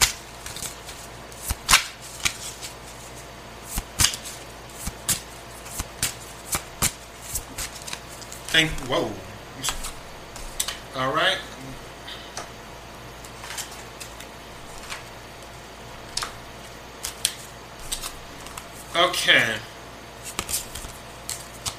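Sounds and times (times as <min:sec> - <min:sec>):
playing cards shuffled and dealt: 0:00.0 - 0:10.8, 0:17.0 - 0:18.9, 0:20.2 - 0:21.7
speech: 0:08.6 - 0:09.7, 0:11.0 - 0:11.4, 0:19.0 - 0:19.7.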